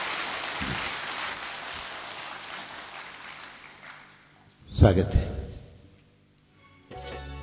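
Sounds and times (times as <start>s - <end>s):
loud applause: 0.0s - 4.3s
speech: 4.8s - 5.4s.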